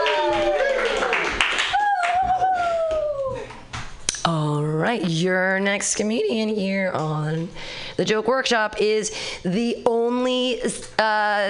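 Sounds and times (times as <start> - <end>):
hands clapping: 0.0 - 4.2
speech: 5.0 - 11.4.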